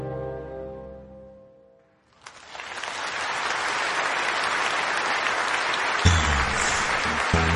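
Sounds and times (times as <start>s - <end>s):
audience applause: 2.1s - 7.5s.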